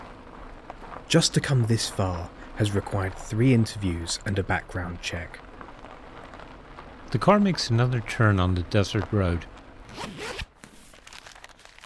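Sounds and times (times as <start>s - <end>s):
speech: 1.1s - 5.5s, 7.1s - 10.4s
rucksack being unzipped and opened: 9.9s - 11.8s.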